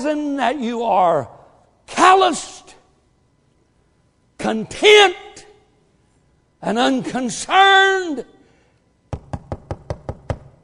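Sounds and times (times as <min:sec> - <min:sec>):
speech: 0:00.0 - 0:01.4, 0:02.0 - 0:02.8, 0:04.4 - 0:05.4, 0:06.6 - 0:08.3
firm hollow knocking on a door: 0:09.1 - 0:10.6.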